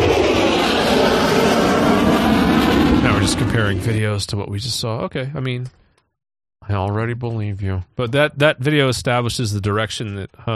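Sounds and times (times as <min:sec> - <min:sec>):
jet engine with afterburner: 0:00.0 - 0:04.1
speech: 0:03.3 - 0:05.8, 0:06.7 - 0:10.5.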